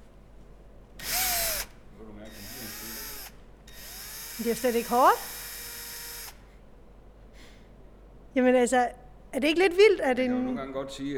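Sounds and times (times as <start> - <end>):
power screwdriver driving screws into a ceiling: 1.0 - 6.5
speech: 4.4 - 5.3, 8.4 - 11.1.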